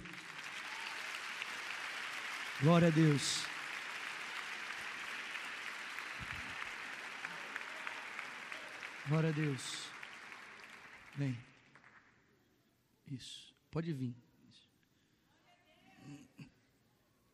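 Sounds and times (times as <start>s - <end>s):
audience applause: 0.0s - 12.1s
speech: 2.6s - 3.5s, 9.1s - 9.9s, 11.2s - 11.5s, 13.1s - 14.6s.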